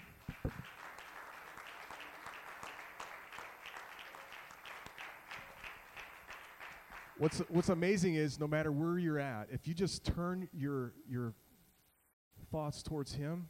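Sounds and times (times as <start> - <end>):
audience hand clapping in praise: 0.0 - 8.2
speech: 7.2 - 11.4, 12.5 - 13.4.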